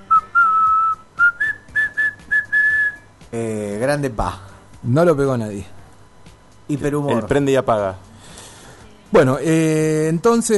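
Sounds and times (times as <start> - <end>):
person whistling a melody: 0.0 - 3.1
speech: 3.3 - 5.8, 6.7 - 8.1, 9.1 - 10.5.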